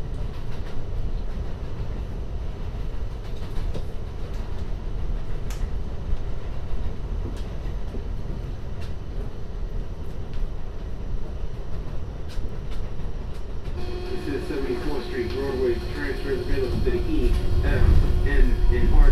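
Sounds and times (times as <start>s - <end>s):
MTA train rumbling: 0.0s - 19.1s
train squealing: 13.8s - 19.1s.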